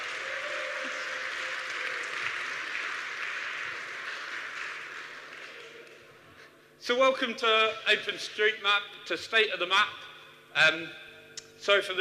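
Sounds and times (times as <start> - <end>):
audience cheering and applause: 0.0 - 6.1
speech: 6.9 - 11.0, 11.6 - 11.9.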